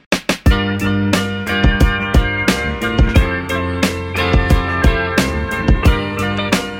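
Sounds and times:
funk music: 0.2s - 6.7s.

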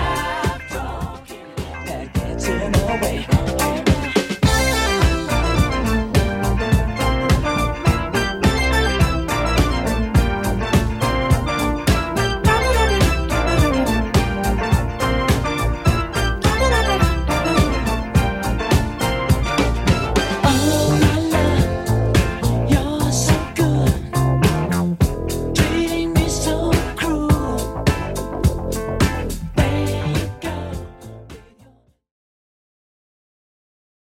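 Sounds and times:
1970s drum break loop: 0.0s - 31.5s.

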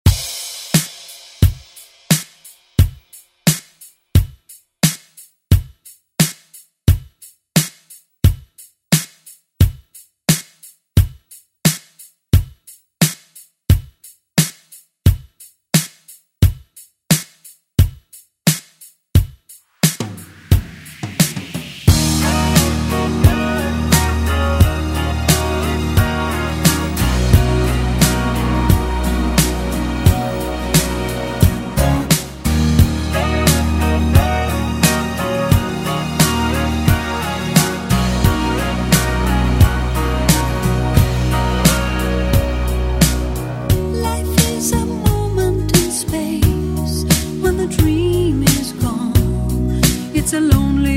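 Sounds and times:
80s drum beat: 0.0s - 50.8s.

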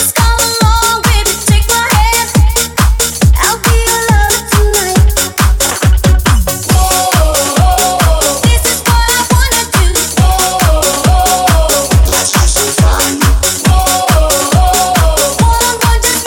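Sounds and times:
90s party dance music at 138 bpm: 0.0s - 16.2s.

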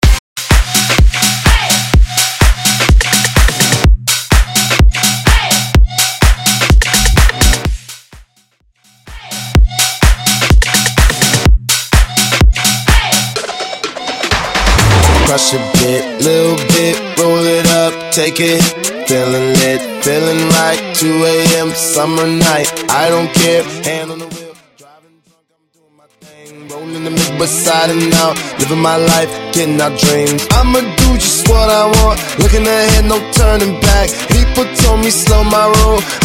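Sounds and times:
bass house music: 0.0s - 13.4s, 14.1s - 24.8s, 26.2s - 36.2s.

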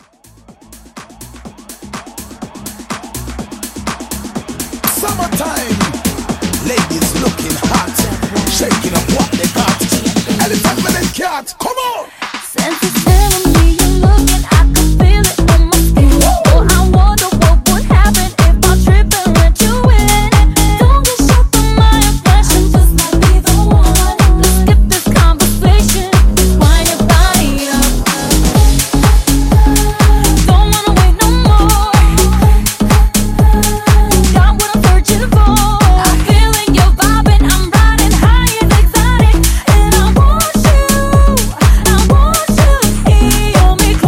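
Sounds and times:
future house mashup at 124 BPM: 0.0s - 44.0s.

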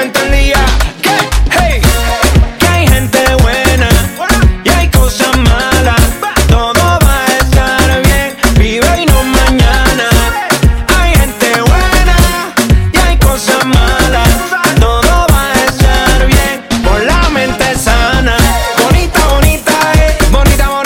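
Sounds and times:
Latin drum loop at 116 BPM: 0.0s - 20.8s.

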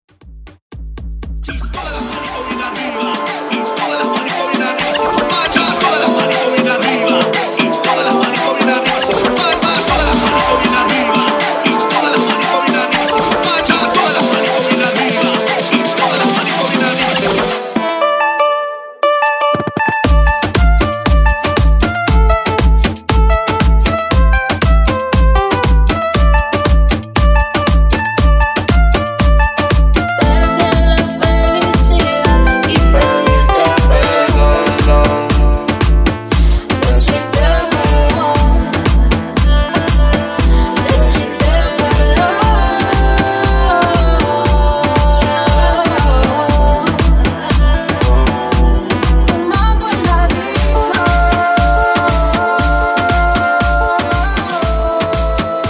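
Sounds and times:
top 40 moombahton intro: 0.1s - 55.6s.

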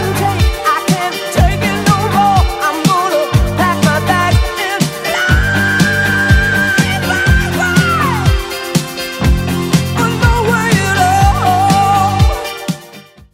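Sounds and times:
80s rock music at 122 bpm: 0.0s - 13.3s.

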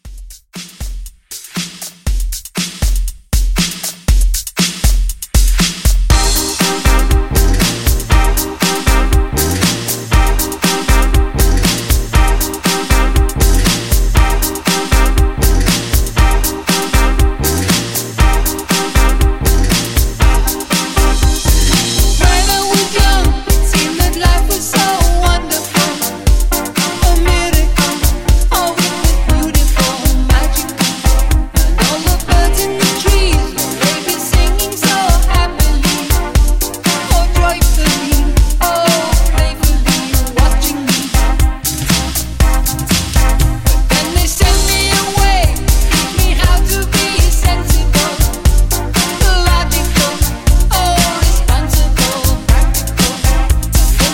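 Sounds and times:
70s classic rock drums: 0.0s - 54.1s.

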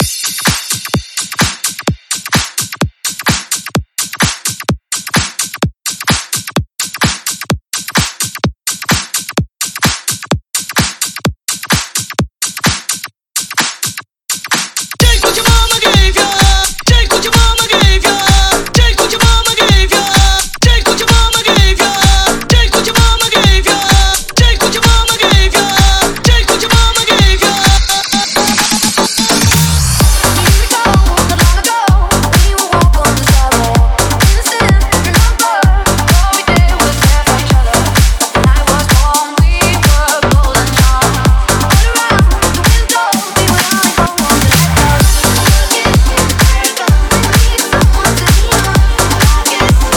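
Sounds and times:
house music: 0.0s - 11.2s, 15.0s - 49.9s.

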